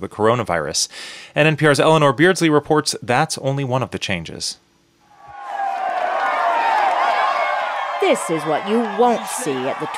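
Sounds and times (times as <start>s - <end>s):
speech: 0.0s - 4.7s, 8.0s - 9.9s
roadside crowd cheering passing cyclists: 5.1s - 9.9s.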